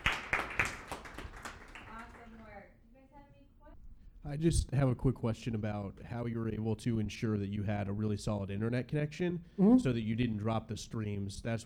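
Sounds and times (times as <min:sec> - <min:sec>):
small audience clapping after a talk: 0:00.0 - 0:02.5
speech: 0:04.3 - 0:11.6.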